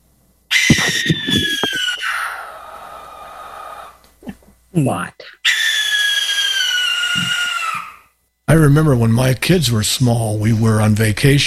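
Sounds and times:
barn owl call: 0.5s - 4.0s, 5.4s - 8.1s
speech: 4.8s - 5.4s, 8.5s - 11.4s.

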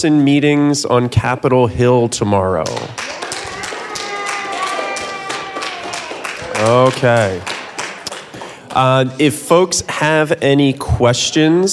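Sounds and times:
speech: 0.0s - 3.1s, 6.6s - 7.5s, 8.8s - 11.7s
audience applause: 3.0s - 8.9s.

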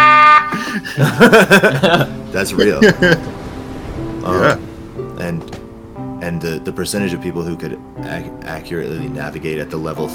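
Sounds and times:
air horn blast: 0.0s - 0.8s
laughter: 0.5s - 3.3s
speech: 1.0s - 3.4s, 4.2s - 4.6s, 6.3s - 10.1s.

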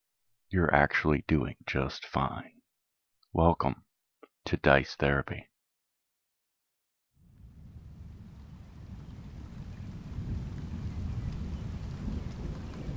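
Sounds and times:
speech: 0.5s - 2.6s, 3.3s - 3.8s, 4.4s - 5.5s
thunder rumbling: 7.2s - 12.9s.

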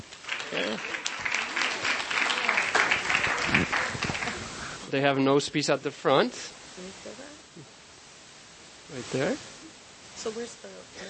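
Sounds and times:
speech: 0.0s - 1.0s, 4.9s - 7.2s, 9.0s - 9.5s, 10.2s - 11.0s
audience applause: 0.0s - 4.8s.

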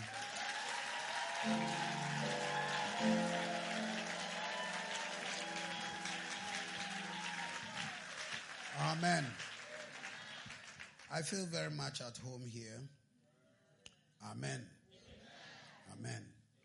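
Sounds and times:
audience clapping: 0.0s - 11.7s
speech: 11.2s - 13.0s, 14.2s - 14.8s, 16.0s - 16.3s.

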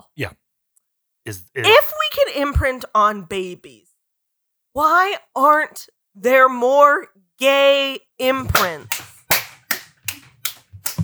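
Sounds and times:
speech: 0.2s - 0.4s, 1.2s - 3.9s, 4.8s - 9.0s
hand clapping: 8.3s - 11.0s.

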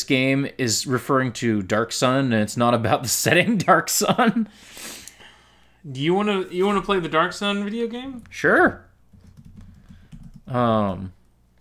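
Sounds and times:
speech: 0.0s - 5.0s, 5.8s - 8.9s, 10.5s - 11.2s
typing on a computer keyboard: 9.1s - 11.0s.

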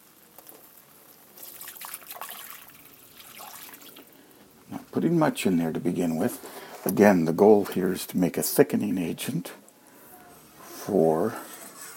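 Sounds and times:
milk pouring into hot pot: 0.0s - 4.4s
milk sizzling in hot pot: 0.0s - 11.9s
speech: 5.0s - 9.6s, 10.9s - 11.5s.

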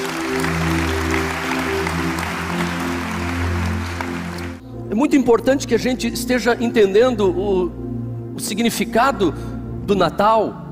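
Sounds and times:
large crowd applauding loudly: 0.0s - 4.6s
sustained low keyboard chords: 0.0s - 10.6s
speech: 4.9s - 7.8s, 8.4s - 10.6s.

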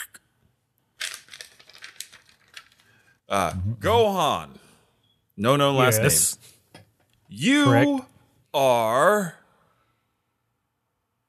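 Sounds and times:
paper envelope being torn open: 1.0s - 2.9s
speech: 3.3s - 4.7s, 5.4s - 6.5s, 7.3s - 9.4s.

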